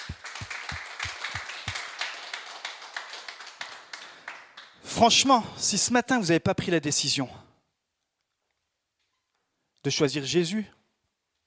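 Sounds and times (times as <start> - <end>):
crowd clapping together in a steady fast rhythm: 0.0 - 5.0
speech: 5.0 - 7.5, 9.8 - 10.8.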